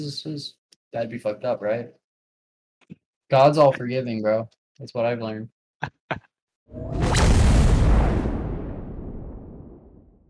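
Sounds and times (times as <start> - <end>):
speech: 0.0 - 2.0, 2.8 - 7.4
homing missile exploding in a video game: 6.8 - 10.2.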